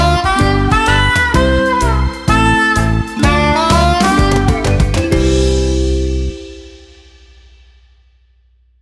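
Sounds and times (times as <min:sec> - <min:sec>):
karaoke singing: 0:00.0 - 0:05.4.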